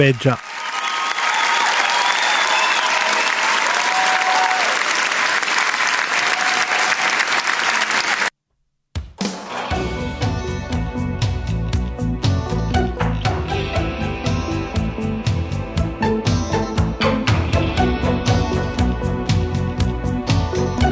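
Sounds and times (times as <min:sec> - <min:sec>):
audience applause: 0:00.0 - 0:08.3
music: 0:09.0 - 0:20.8.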